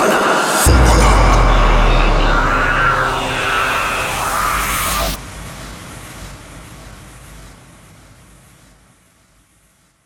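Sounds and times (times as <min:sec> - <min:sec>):
universal transition sound effect: 0:00.2 - 0:07.1.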